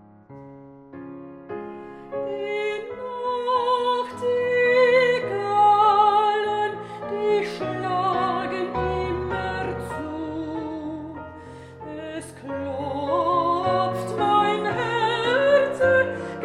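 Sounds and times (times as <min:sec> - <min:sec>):
piano in romantic style: 0:00.0 - 0:16.4
person singing in romantic style: 0:02.2 - 0:16.4.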